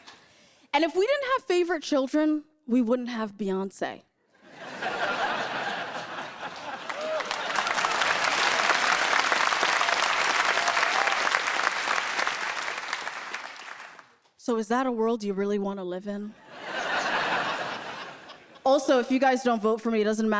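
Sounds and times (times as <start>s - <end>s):
speech: 0.7s - 4.1s, 14.5s - 16.4s, 18.6s - 20.3s
laughter: 4.4s - 9.1s, 16.4s - 18.7s
audience applause: 5.4s - 14.1s.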